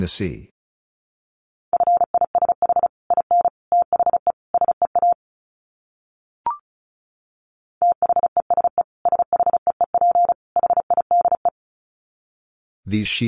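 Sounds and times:
Morse code beeps at about 35 words per minute: 1.8s - 5.2s, 7.8s - 11.5s.

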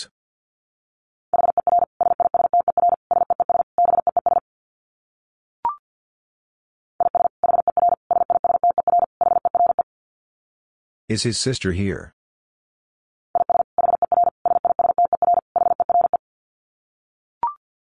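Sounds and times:
Morse code beeps at about 50 words per minute: 1.4s - 4.4s, 7.0s - 9.8s, 13.4s - 16.2s
speech: 11.1s - 12.2s.

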